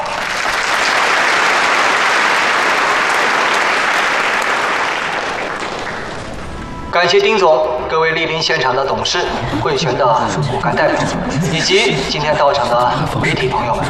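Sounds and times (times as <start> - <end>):
warm applause welcoming a speaker: 0.0 - 6.6
speech: 7.0 - 13.8
laughter: 8.6 - 13.8.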